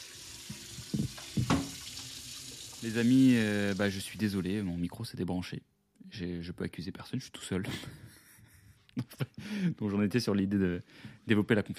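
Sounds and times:
water running from a tap into a sink: 0.0 - 4.5
speech: 2.8 - 8.2, 9.0 - 11.7.

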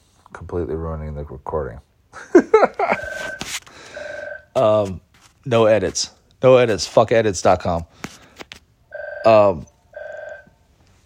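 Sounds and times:
speech: 0.5 - 3.1, 4.6 - 8.2, 9.2 - 9.7
laughter: 2.2 - 3.3
mobile phone ringing: 2.6 - 4.8, 8.9 - 10.7.

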